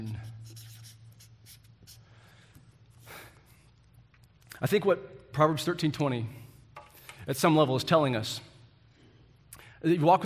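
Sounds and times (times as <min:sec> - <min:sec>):
pen scratching while writing words inside drawn circles: 0:00.0 - 0:02.0
speech: 0:04.6 - 0:06.4, 0:07.2 - 0:08.5, 0:09.8 - 0:10.2.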